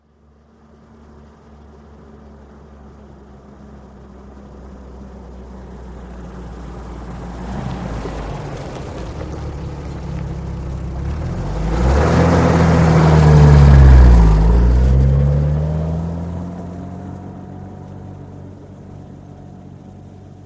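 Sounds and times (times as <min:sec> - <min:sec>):
UAZ vehicle approaching slowly and pulling away: 0:00.7 - 0:20.4.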